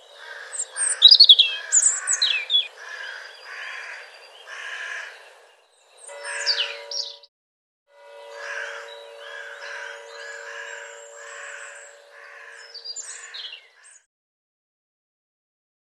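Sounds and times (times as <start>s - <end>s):
bird caw-like notes and chirps: 0.1s - 5.3s, 6.0s - 7.3s, 8.0s - 14.1s.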